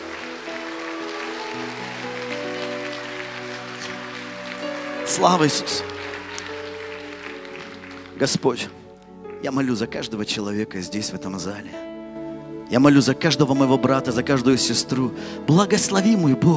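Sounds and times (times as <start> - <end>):
audience applause: 0.0 - 8.9
speech: 5.1 - 6.1, 8.2 - 8.8, 9.4 - 11.9, 12.7 - 16.5.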